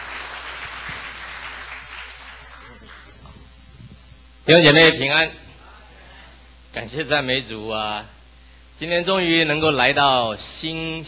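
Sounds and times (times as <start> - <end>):
audience applause: 0.0 - 3.2
speech: 4.5 - 5.4, 6.8 - 8.2, 8.8 - 11.0.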